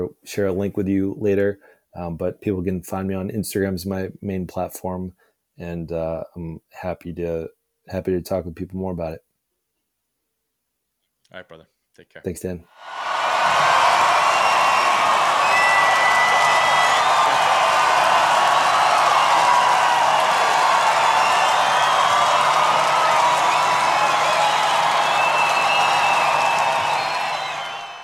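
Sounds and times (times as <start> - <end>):
speech: 0.0 - 9.3, 11.3 - 13.1
large crowd cheering and applauding: 12.8 - 28.0.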